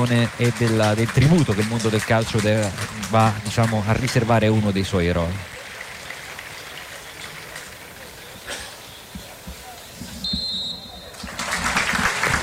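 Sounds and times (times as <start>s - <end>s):
speech: 0.0s - 5.5s
stadium crowd applauding in tribute: 0.0s - 12.4s
short sharp whistle blast: 10.2s - 11.2s.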